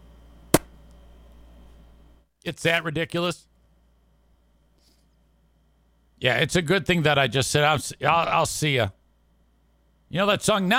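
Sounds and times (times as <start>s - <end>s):
short dull pop for the weak firing of a yogurt cannon: 0.5s - 0.8s
speech: 2.4s - 3.5s, 6.2s - 9.0s, 10.1s - 10.7s.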